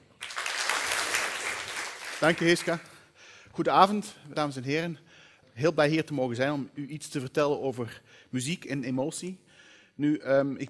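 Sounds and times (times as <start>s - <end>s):
audience applause: 0.0s - 2.8s
speech: 2.2s - 2.9s, 3.6s - 9.4s, 10.0s - 10.6s.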